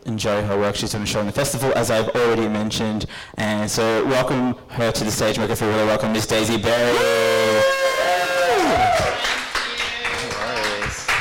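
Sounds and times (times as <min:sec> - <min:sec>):
speech: 0:00.2 - 0:07.4
audience clapping: 0:08.5 - 0:11.1.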